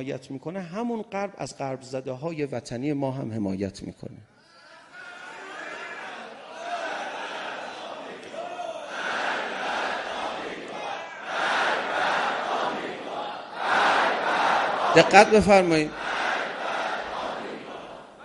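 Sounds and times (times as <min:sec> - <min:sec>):
speech: 0:00.0 - 0:04.4, 0:15.0 - 0:16.0
large crowd chanting slogans against the West: 0:04.9 - 0:18.2.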